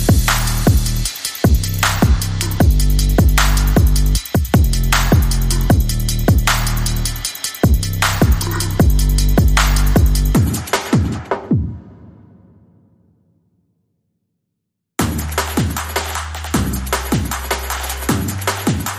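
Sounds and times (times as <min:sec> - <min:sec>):
bass: 0:00.0 - 0:10.6, 0:15.0 - 0:18.9
drums: 0:00.0 - 0:12.5, 0:15.0 - 0:18.9.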